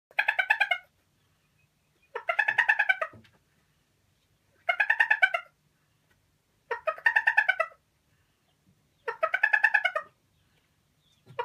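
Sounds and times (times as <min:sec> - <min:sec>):
Araucana hen cackling while laying an egg: 0:00.1 - 0:01.0, 0:02.1 - 0:03.2, 0:04.6 - 0:05.6, 0:06.7 - 0:07.8, 0:09.0 - 0:10.2, 0:11.2 - 0:11.4.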